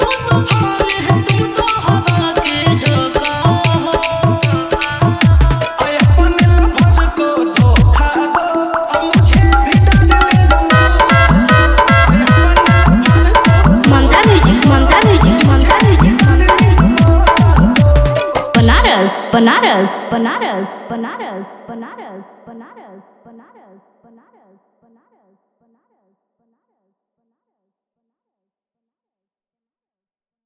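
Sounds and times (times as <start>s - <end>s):
Bhojpuri DJ remix song: 0.0s - 22.4s.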